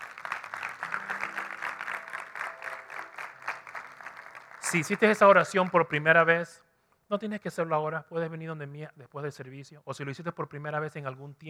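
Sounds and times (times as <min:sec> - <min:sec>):
audience applause: 0:00.0 - 0:06.0
speech: 0:04.7 - 0:11.4.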